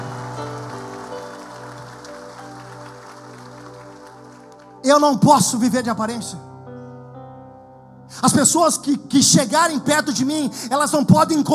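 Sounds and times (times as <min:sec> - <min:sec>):
audience applause: 0:00.0 - 0:04.8
speech: 0:04.8 - 0:06.5, 0:08.2 - 0:11.5.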